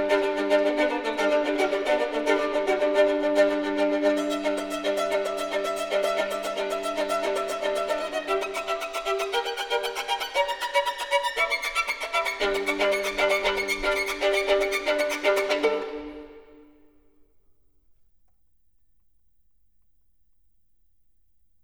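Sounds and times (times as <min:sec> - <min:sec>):
solo violin piece: 0:00.0 - 0:16.9.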